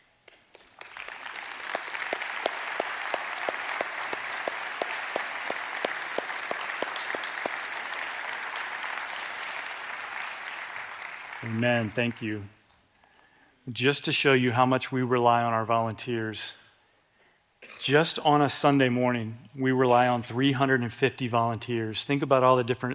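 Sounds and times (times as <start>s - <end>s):
audience applauding: 0.0s - 12.4s
speech: 11.5s - 12.6s, 13.7s - 16.6s, 17.8s - 22.9s.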